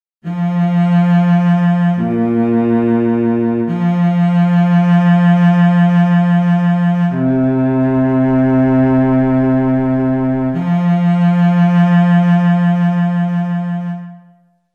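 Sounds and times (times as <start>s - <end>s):
bass: 0.2s - 14.3s.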